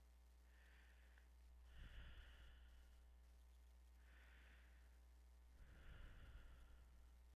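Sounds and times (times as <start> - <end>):
light breathing: 0.3 - 7.3.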